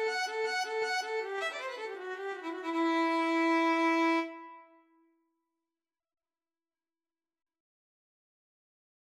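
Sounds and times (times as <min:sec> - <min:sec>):
violin duet: 0:00.0 - 0:04.5.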